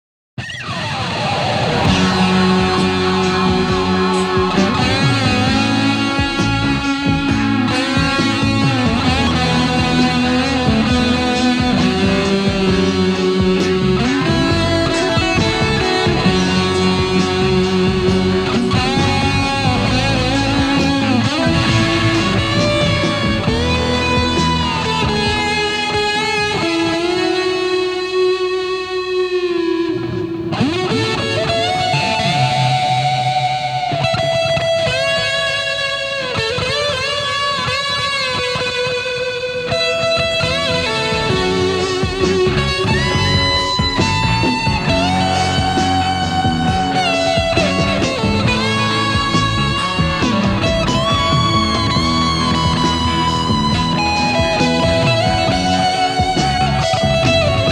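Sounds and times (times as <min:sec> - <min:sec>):
guitar solo through EHX Green Russian fuzz pedal: 0:00.4 - 0:57.7.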